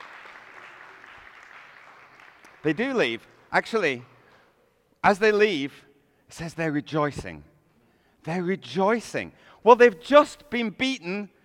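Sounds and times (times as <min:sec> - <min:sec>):
audience applause: 0:00.0 - 0:03.0
speech: 0:02.6 - 0:04.1, 0:05.0 - 0:07.5, 0:08.2 - 0:11.4.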